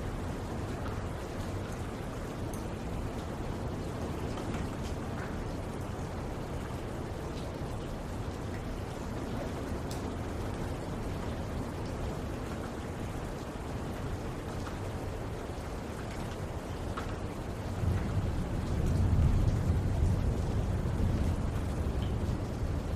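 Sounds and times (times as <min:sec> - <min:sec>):
rain falling: 0:00.0 - 0:22.9.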